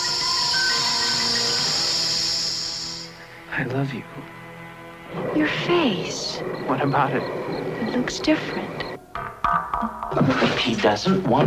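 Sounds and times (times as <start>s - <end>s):
hissing: 0.0s - 9.2s
speech: 3.6s - 4.4s, 5.1s - 8.8s, 9.8s - 11.4s.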